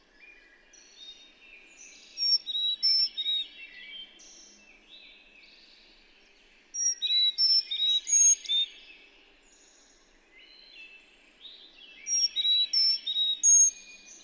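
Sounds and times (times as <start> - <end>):
bird song phrase of clear whistled notes: 0.2 - 4.6, 6.8 - 8.9, 11.9 - 14.2.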